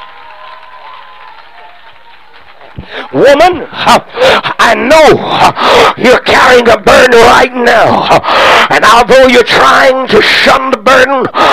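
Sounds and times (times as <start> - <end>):
audience clapping hands: 0.0 - 3.8
speech: 2.8 - 11.5.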